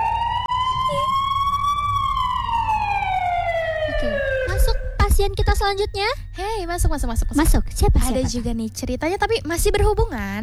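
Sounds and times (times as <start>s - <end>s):
ambulance siren wailing: 0.0s - 8.0s
low rumble of traffic: 0.0s - 10.4s
speech: 5.2s - 10.4s.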